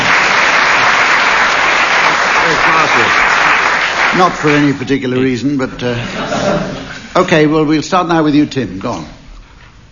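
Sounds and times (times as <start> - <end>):
audience applause: 0.0 - 5.1
speech: 4.2 - 9.2
laughter: 5.8 - 7.2.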